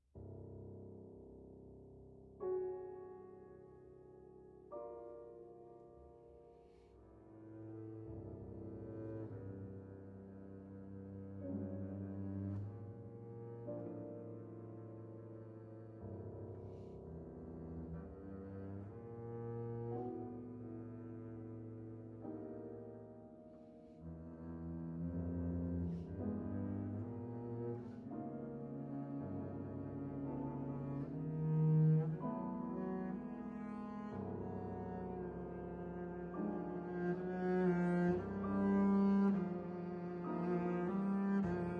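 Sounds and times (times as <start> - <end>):
piano: 0.0 - 41.7
double bass: 7.0 - 22.2, 23.7 - 41.7.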